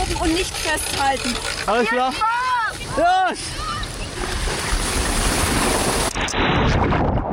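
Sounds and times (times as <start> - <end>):
speech: 0.2 - 3.7, 6.1 - 7.1
splashing down a water slide into water: 3.7 - 7.2.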